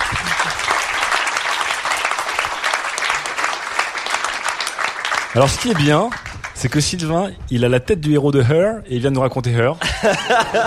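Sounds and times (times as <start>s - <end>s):
laughter: 0.0s - 0.9s, 9.8s - 10.6s
audience applause: 0.0s - 6.9s
speech: 5.3s - 10.6s.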